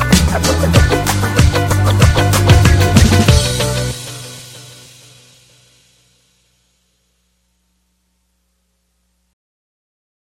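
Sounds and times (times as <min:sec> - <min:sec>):
funky hip hop music: 0:00.0 - 0:05.5.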